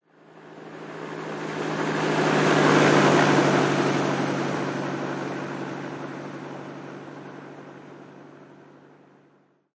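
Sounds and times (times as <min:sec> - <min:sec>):
helicopter flying past fast: 0:00.7 - 0:07.3.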